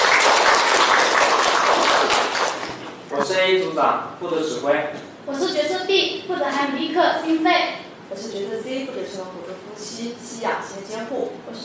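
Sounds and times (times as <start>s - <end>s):
group applauding: 0.0s - 3.1s
speech: 3.5s - 11.6s.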